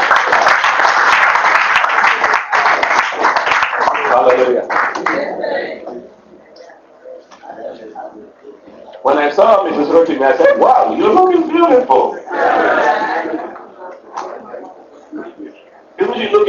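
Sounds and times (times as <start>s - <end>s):
crowd clapping: 0.0s - 5.3s
murmuring voices: 3.8s - 16.4s
speech: 9.4s - 12.2s.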